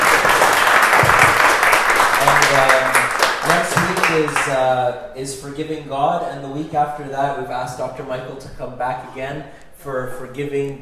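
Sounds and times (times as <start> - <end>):
audience applause: 0.0 - 4.6
speech: 2.5 - 10.7.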